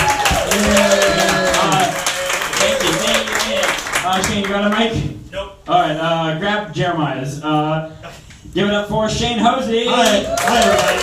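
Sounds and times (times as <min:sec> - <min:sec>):
people cheering and whooping: 0:00.0 - 0:03.2, 0:09.9 - 0:11.0
audience clapping: 0:00.0 - 0:04.9, 0:09.9 - 0:11.0
speech: 0:04.2 - 0:11.0.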